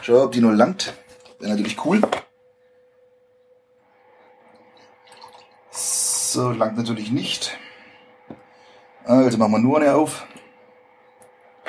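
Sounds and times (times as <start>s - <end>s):
speech: 0.0s - 2.2s, 6.4s - 7.6s, 9.1s - 10.4s
milk pouring into a glass: 4.2s - 6.3s.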